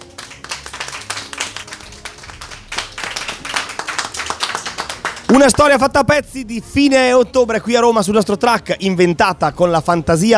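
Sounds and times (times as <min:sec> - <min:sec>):
applause from a small group: 0:00.0 - 0:05.9
speech: 0:05.3 - 0:10.3.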